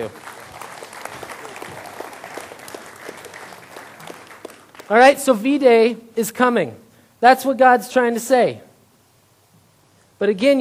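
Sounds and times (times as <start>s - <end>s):
speech: 0.0s - 0.3s, 4.9s - 8.7s, 10.2s - 10.5s
applause: 0.0s - 5.3s.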